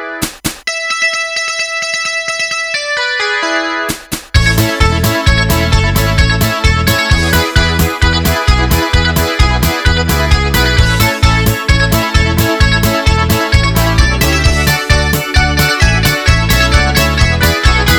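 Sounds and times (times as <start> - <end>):
rocking polka music: 0.2 - 17.9.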